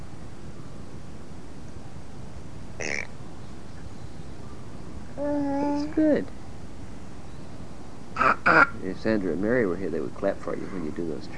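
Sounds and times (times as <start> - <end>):
steady hiss: 0.0 - 11.3
speech: 6.0 - 6.4, 8.9 - 11.3
child imitating a duck quack: 8.2 - 8.8.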